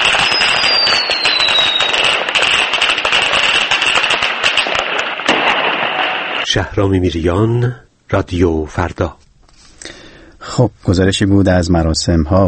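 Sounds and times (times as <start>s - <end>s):
fireworks exploding in Dubai: 0.0s - 6.8s
speech: 6.6s - 9.2s, 10.6s - 12.4s.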